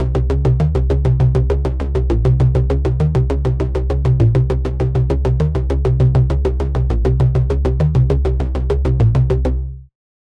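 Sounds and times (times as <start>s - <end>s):
bass: 0.0s - 10.0s.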